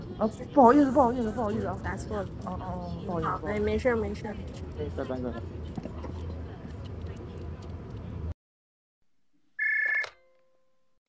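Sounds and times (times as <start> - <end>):
speech: 0.2 - 5.8
telephone ringing: 9.6 - 10.3.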